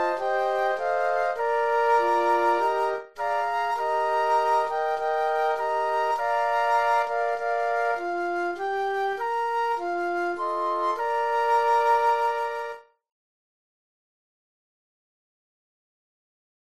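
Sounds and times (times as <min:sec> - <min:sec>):
flute quartet: 0:00.0 - 0:13.0.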